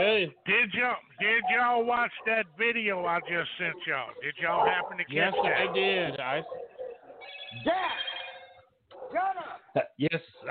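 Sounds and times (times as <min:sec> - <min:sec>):
speech: 0:00.0 - 0:08.1, 0:09.1 - 0:10.4
phone notification ringing: 0:07.2 - 0:08.6.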